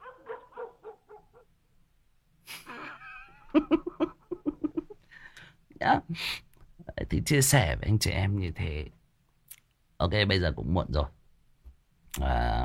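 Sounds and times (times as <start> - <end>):
dog barking in short sharp yaps: 0.0 - 1.5
speech: 3.6 - 3.9, 6.1 - 6.4, 7.1 - 9.0, 10.0 - 11.2, 12.2 - 12.4.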